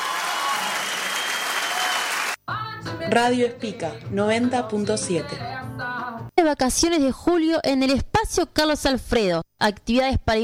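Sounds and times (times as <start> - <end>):
audience applause: 0.0 - 2.4
speech: 3.1 - 5.5, 6.4 - 10.4.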